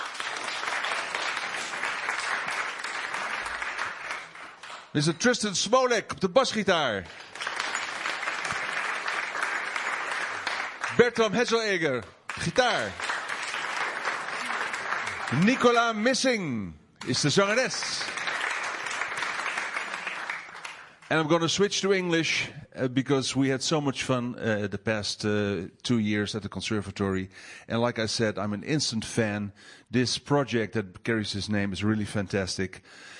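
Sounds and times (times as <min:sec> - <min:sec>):
audience applause for band members: 0:00.0 - 0:04.9, 0:06.8 - 0:16.1, 0:17.1 - 0:21.1
speech: 0:05.0 - 0:07.3, 0:11.0 - 0:13.0, 0:15.3 - 0:18.0, 0:21.1 - 0:33.1.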